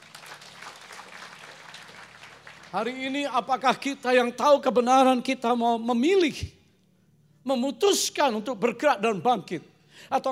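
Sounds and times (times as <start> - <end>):
audience applause: 0.0 - 2.9
speech: 2.7 - 6.6, 7.4 - 10.2.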